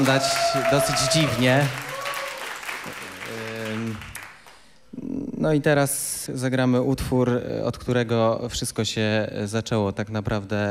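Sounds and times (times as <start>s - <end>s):
speech: 0.0s - 1.9s, 5.4s - 10.7s
audience applause: 0.0s - 4.6s.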